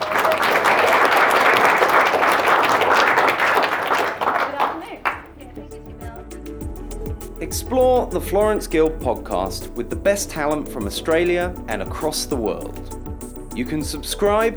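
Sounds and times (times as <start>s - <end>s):
audience applause: 0.0s - 5.4s
speech: 8.0s - 12.9s, 13.6s - 14.5s.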